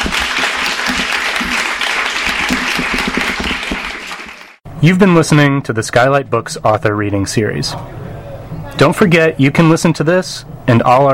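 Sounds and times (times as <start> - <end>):
audience applause: 0.0 - 4.6
speech: 4.8 - 8.1, 8.8 - 11.1.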